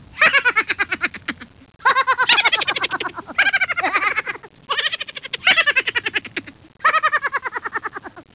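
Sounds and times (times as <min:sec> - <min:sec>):
person laughing: 0:00.2 - 0:08.3.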